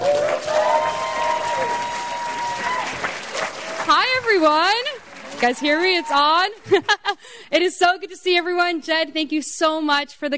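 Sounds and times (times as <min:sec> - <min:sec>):
audience clapping: 0:00.0 - 0:07.1
speech: 0:04.4 - 0:10.3.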